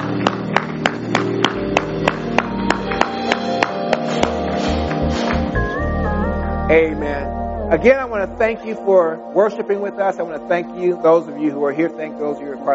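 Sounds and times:
audience hand clapping: 0.0s - 5.6s
speech: 6.7s - 12.7s.

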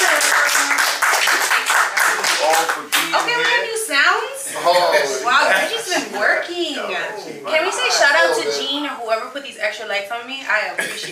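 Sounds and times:
round of applause from the room: 0.0s - 3.4s
speech: 2.5s - 11.0s.

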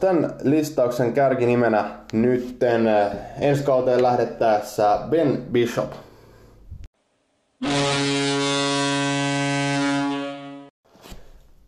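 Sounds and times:
speech: 0.0s - 6.1s
buzzer horn: 7.6s - 10.7s.

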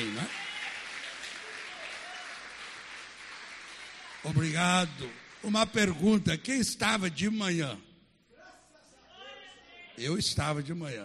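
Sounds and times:
audience applause: 0.0s - 6.2s
speech: 4.2s - 7.9s, 10.0s - 11.0s.

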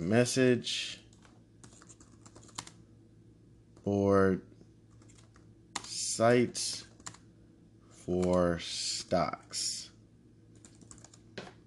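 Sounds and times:
speech: 0.1s - 1.0s, 3.9s - 4.5s, 6.2s - 6.9s, 8.1s - 9.8s
fingers typing on a computer keyboard: 1.1s - 2.8s, 4.9s - 5.9s, 6.9s - 7.2s, 10.6s - 11.2s.

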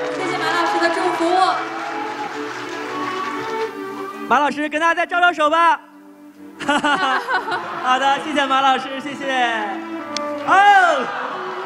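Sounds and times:
crowd applauding: 0.0s - 4.4s, 6.6s - 11.6s
speech: 4.3s - 5.9s, 6.7s - 11.3s
laughter: 6.6s - 9.0s, 10.9s - 11.6s.

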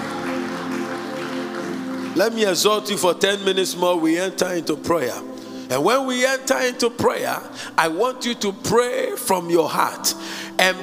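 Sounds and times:
audience clapping: 0.0s - 3.6s
speech: 2.2s - 10.8s.

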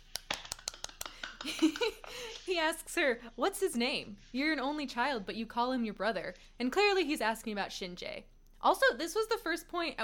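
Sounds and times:
hand claps: 0.0s - 2.0s
speech: 1.4s - 10.0s.

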